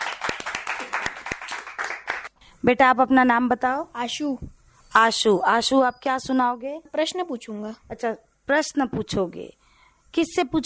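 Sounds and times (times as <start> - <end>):
audience clapping for a child: 0.0 - 2.4
speech: 2.6 - 10.6.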